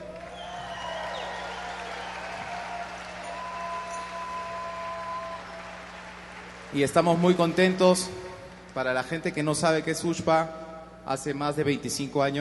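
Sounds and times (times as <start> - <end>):
concert audience applause: 0.0 - 9.2
speech: 6.7 - 8.2, 8.8 - 12.3.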